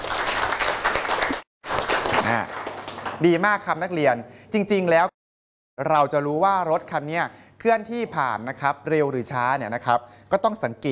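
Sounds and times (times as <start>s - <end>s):
students applauding: 0.0s - 3.4s
speech: 2.3s - 2.6s, 3.2s - 5.1s, 5.8s - 10.9s.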